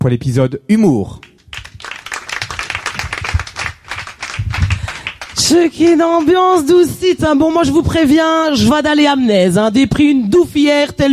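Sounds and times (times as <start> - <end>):
speech: 0.0 - 1.3, 5.5 - 11.1
audience applause: 1.3 - 6.4.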